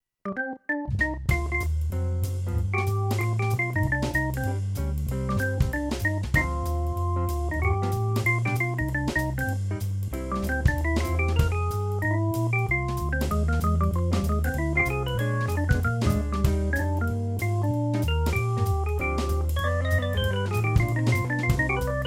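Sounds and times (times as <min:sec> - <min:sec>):
organ: 0:00.4 - 0:22.0.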